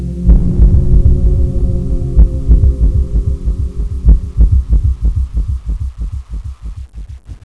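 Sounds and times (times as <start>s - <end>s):
scary sound: 0.2s - 6.1s.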